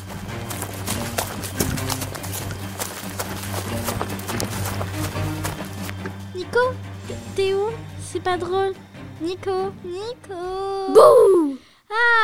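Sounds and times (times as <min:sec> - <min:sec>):
hurried footsteps of people running away on foot at a campsite: 0:00.0 - 0:06.4
constant low hum: 0:00.0 - 0:11.1
speech: 0:06.5 - 0:12.1.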